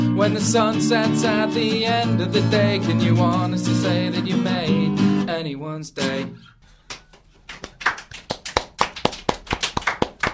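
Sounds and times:
speech: 0.2s - 6.5s
muted applause from a small audience: 6.9s - 10.3s.

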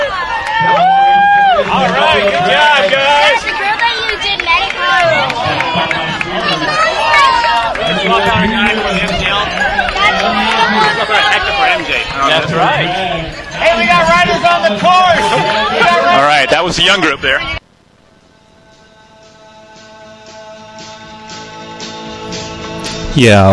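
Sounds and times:
crowd cheering wildly at bike race: 0.0s - 16.7s
speech: 11.7s - 17.6s, 23.2s - 23.5s.

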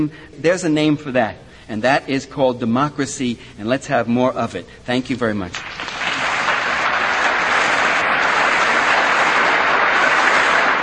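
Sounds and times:
speech: 0.0s - 6.0s
audience applause: 5.6s - 10.8s.

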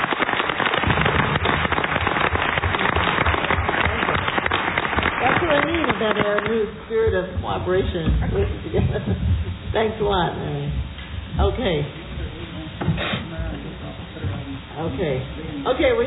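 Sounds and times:
board members clapping: 0.0s - 7.3s
people talking: 5.2s - 16.0s.

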